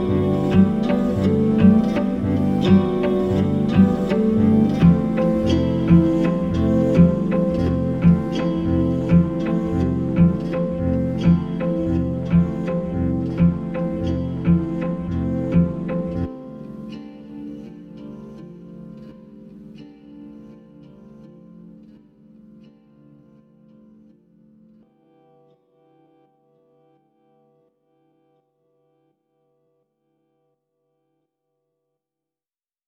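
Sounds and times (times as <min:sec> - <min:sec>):
instrumental music: 0:00.0 - 0:24.8.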